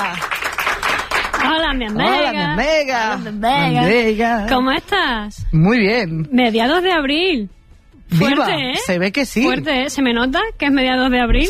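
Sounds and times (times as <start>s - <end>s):
applause: 0.0s - 2.2s
speech: 1.7s - 11.4s.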